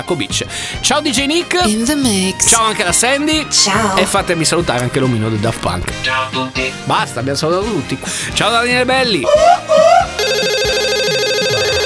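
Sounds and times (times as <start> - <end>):
speech: 0.0 - 10.1
telephone electronic warbling ringtone: 10.2 - 11.8.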